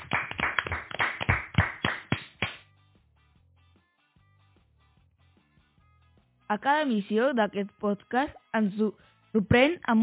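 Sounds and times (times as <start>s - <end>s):
audience applause: 0.0s - 2.2s
speech: 6.5s - 10.0s.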